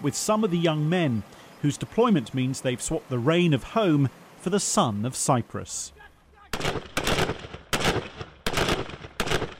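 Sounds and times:
speech: 0:00.0 - 0:06.0
assault rifle firing in the rapid: 0:06.5 - 0:09.5.

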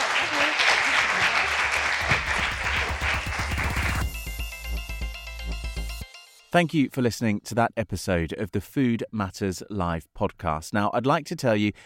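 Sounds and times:
audience applauding the panel: 0:00.0 - 0:04.1
music: 0:00.8 - 0:06.9
speech: 0:06.5 - 0:11.8.

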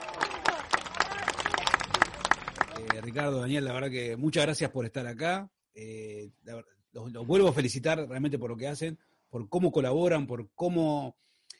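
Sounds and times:
audience applause for guests at the close of a segment: 0:00.0 - 0:03.4
speech: 0:02.8 - 0:11.3.

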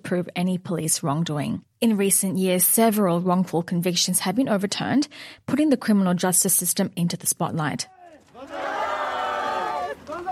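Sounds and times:
speech: 0:00.1 - 0:08.6
Hakamada support group crowd cheering: 0:07.9 - 0:10.2.

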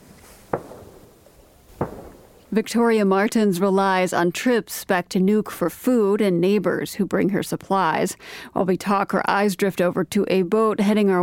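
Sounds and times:
gunshots echoing around a fjord: 0:00.5 - 0:02.5
speech: 0:02.5 - 0:11.2.

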